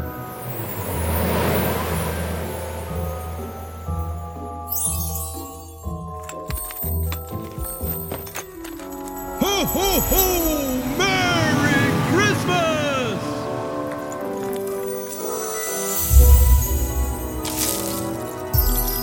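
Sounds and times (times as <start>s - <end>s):
Christmas holiday sound effects: 0.0s - 19.0s
laughter: 9.3s - 13.5s.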